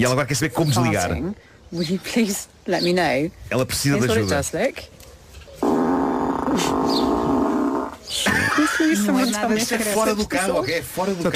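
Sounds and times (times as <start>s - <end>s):
speech: 0.0s - 5.0s, 6.5s - 7.5s, 8.1s - 11.3s
car lock chime set to fart noise: 5.6s - 8.6s.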